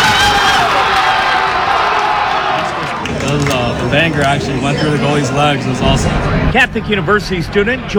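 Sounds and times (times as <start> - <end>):
soccer watch party crowd cheering: 0.0 - 6.3
speech: 3.3 - 7.9.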